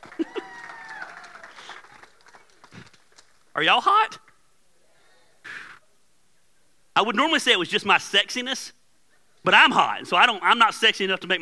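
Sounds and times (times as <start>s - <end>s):
round of applause: 0.0s - 3.6s
speech: 3.6s - 4.2s, 7.0s - 8.8s, 9.4s - 11.4s.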